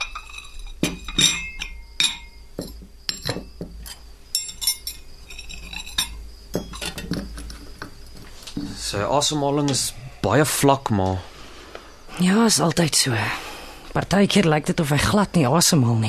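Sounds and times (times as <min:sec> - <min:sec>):
crockery knocking: 0:00.0 - 0:05.0, 0:05.7 - 0:08.0
spoons tapping: 0:00.0 - 0:07.5
cups and cutlery clinking while making coffee: 0:00.0 - 0:08.8
speech: 0:09.0 - 0:11.3, 0:12.2 - 0:13.4, 0:14.0 - 0:16.0.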